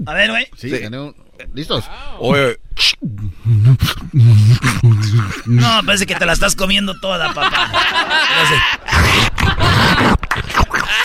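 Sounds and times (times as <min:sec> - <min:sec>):
speech: 0:00.0 - 0:09.4
beatbox vocal percussion: 0:02.8 - 0:05.9, 0:08.4 - 0:11.0
laughter: 0:07.0 - 0:11.0.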